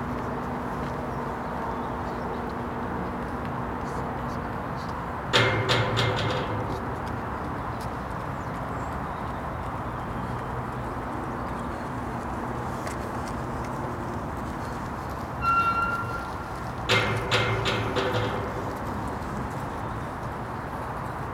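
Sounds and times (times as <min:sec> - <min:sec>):
wind: 0:00.0 - 0:21.3.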